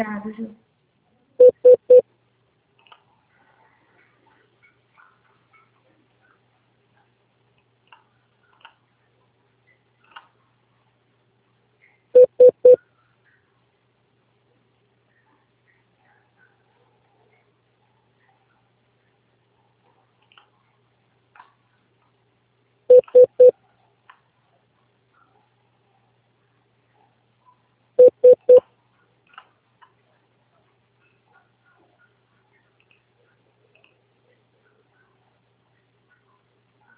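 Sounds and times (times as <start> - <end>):
telephone keypad dialing tones: 1.4 - 2.0, 12.2 - 12.8, 22.9 - 23.5, 28.0 - 28.6.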